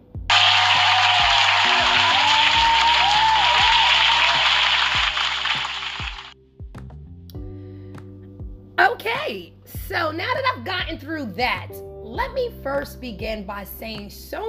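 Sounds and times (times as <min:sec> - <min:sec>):
round of applause: 0:00.3 - 0:06.4
speech: 0:09.3 - 0:14.4.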